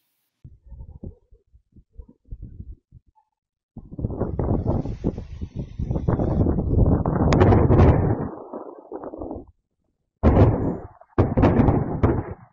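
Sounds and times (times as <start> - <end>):
Oreshnik missile strike explosions rumbling: 3.8 - 9.5, 10.2 - 12.5.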